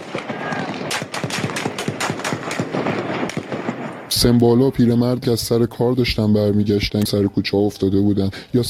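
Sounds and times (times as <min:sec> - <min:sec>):
Kalashnikov automatic rifle gunfire: 0:00.0 - 0:04.1
speech: 0:04.2 - 0:08.6.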